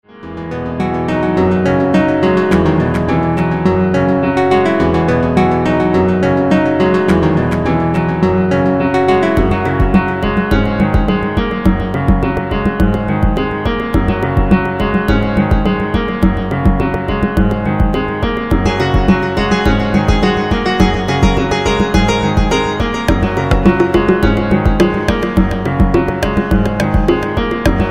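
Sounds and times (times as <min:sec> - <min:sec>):
hot piano music: 0:00.0 - 0:27.8.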